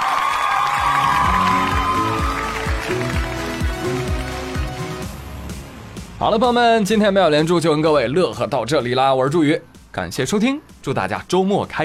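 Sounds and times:
applause: 0:00.0 - 0:05.0
speech: 0:06.2 - 0:11.8.

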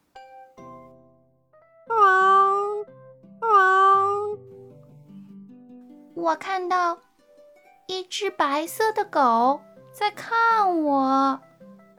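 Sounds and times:
cat meowing: 0:03.4 - 0:04.4
speech: 0:06.2 - 0:07.1, 0:07.9 - 0:11.5.

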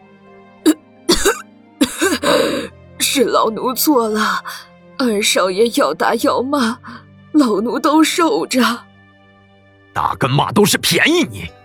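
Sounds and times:
old maidservant coughing in anger: 0:00.7 - 0:02.7
speech: 0:03.1 - 0:08.9, 0:10.0 - 0:11.6.

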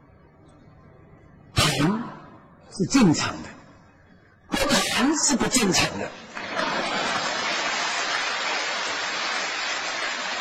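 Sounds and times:
speech: 0:01.8 - 0:03.5, 0:05.2 - 0:06.3
audience applause: 0:06.4 - 0:10.3.

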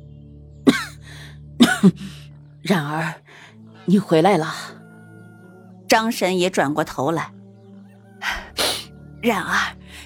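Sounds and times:
man coughing while struggling to get up: 0:00.7 - 0:00.9
speech: 0:01.8 - 0:04.8, 0:05.9 - 0:07.4, 0:09.2 - 0:09.8.

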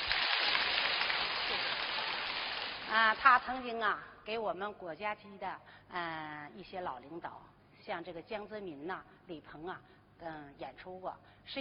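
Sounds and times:
audience applause: 0:00.0 - 0:02.9
speech: 0:02.9 - 0:11.5.

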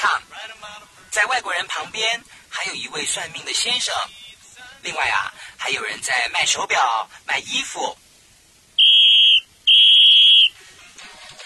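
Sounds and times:
speech: 0:00.0 - 0:04.2, 0:04.8 - 0:08.0
police whistle blown as a warning: 0:08.8 - 0:10.6.

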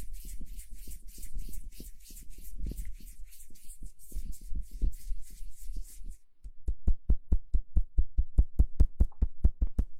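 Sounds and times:
hands rubbing together: 0:00.0 - 0:06.2
rapid sharp taps: 0:06.4 - 0:09.9.

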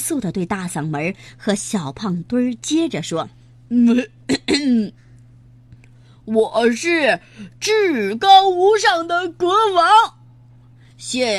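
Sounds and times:
speech: 0:00.1 - 0:05.0, 0:06.3 - 0:10.2, 0:11.0 - 0:11.3
narrator clearing throat as a pig character: 0:04.0 - 0:04.9.

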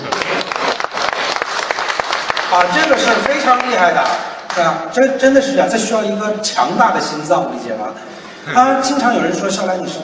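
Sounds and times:
audience applause: 0:00.0 - 0:04.2
speech: 0:02.5 - 0:10.0.

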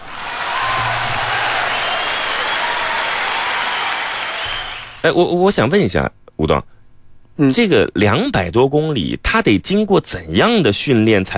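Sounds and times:
audience applause: 0:00.0 - 0:05.0
speech: 0:05.0 - 0:06.8, 0:07.4 - 0:11.3.

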